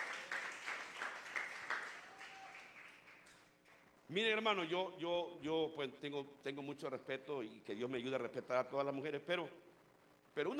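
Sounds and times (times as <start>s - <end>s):
audience clapping: 0.0s - 3.8s
speech: 4.1s - 9.7s, 10.4s - 10.5s.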